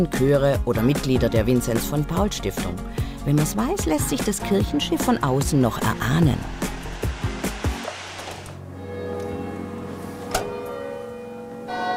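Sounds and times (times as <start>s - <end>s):
speech: 0.0s - 6.7s
church bells ringing: 8.6s - 11.9s.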